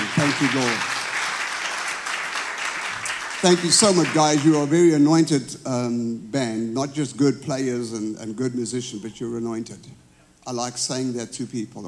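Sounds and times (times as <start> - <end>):
audience clapping: 0.0 - 4.8
speech: 0.4 - 0.9, 3.4 - 11.8.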